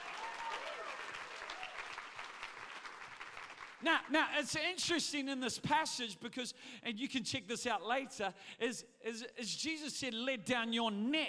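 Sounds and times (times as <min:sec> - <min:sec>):
audience applause: 0:00.0 - 0:03.8
speech: 0:03.8 - 0:11.2.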